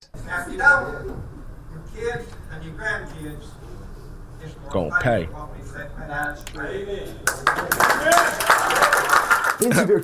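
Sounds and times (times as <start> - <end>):
speech: 0.3 - 1.3, 1.9 - 10.0
crowd clapping: 7.2 - 10.0.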